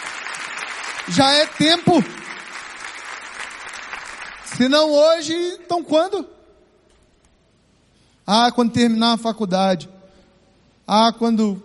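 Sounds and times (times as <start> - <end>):
audience applauding: 0.0 - 5.0
speech: 1.0 - 2.2, 4.6 - 6.4, 8.3 - 10.0, 10.9 - 11.6.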